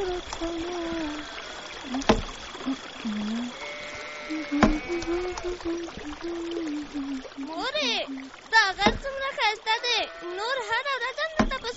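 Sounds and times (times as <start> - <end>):
mountain stream flowing under a small bridge: 0.0 - 11.7
sharp knocks: 2.0 - 2.4, 8.8 - 9.2, 11.4 - 11.7
speech: 5.6 - 11.7.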